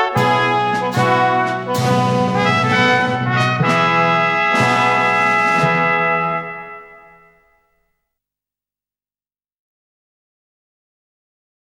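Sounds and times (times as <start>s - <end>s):
percussion: 0.2s - 6.7s
metallic sounds: 0.3s - 5.5s.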